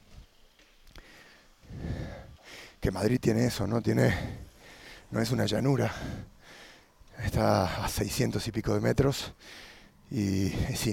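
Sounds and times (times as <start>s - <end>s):
panting while cycling uphill: 1.0s - 2.8s, 4.0s - 5.1s, 5.8s - 7.0s, 9.4s - 10.0s
speech: 2.8s - 4.4s, 5.1s - 6.3s, 7.2s - 10.9s.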